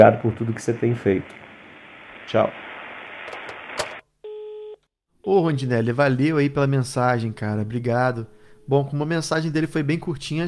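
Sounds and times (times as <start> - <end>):
speech: 0.0 - 1.4, 2.3 - 2.6, 5.2 - 10.4
loud hiss: 0.0 - 4.0
telephone ringing with an incoming call: 4.2 - 4.8.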